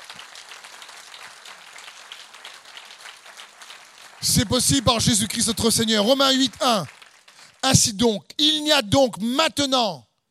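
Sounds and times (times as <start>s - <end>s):
congregation clapping in praise of Jesus: 0.0s - 8.2s
speech: 4.2s - 7.0s, 7.6s - 10.1s.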